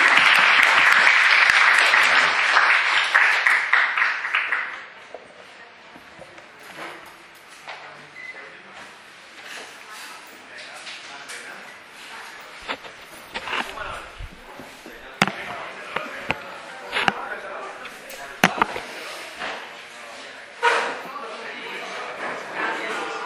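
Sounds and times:
audience applause for the presenters: 0.0 - 5.0
people talking: 7.7 - 23.2
shuffling: 12.2 - 19.7.

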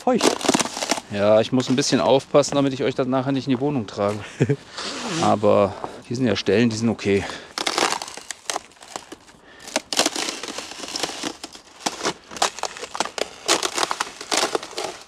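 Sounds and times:
footsteps crunching and breaking thin ice: 0.0 - 2.0, 7.0 - 15.0
speech: 0.0 - 7.4.

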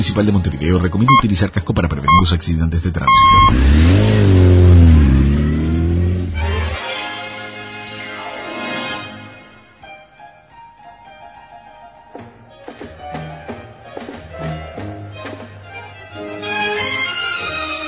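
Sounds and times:
speech: 0.0 - 5.2
motorcycle engine revving: 3.1 - 6.8.

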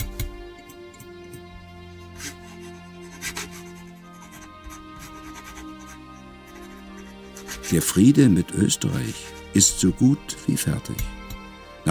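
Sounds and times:
pen scratching on paper writing a birthday letter: 2.2 - 8.4
speech: 7.7 - 11.2.

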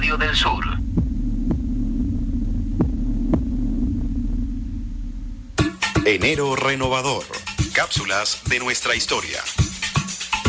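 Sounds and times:
constant deep hum: 0.0 - 6.1
heartbeat sound effect: 0.0 - 6.4
speech: 0.1 - 1.0, 6.1 - 9.7.

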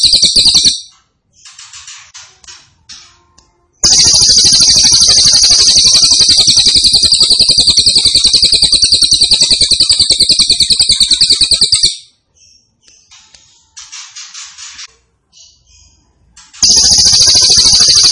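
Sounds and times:
grey-cheeked tit-babbler singing buzzing trills: 3.8 - 11.8, 16.6 - 18.0.

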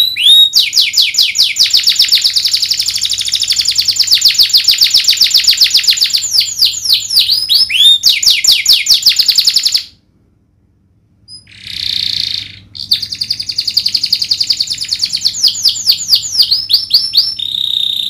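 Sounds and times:
domestic canary singing: 0.0 - 10.0, 11.3 - 18.0.

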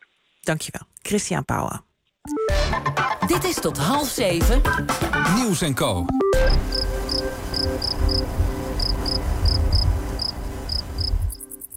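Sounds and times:
speech: 0.5 - 1.9, 2.7 - 8.4
field cricket and wart-biter bush-cricket chirping: 6.6 - 11.7.

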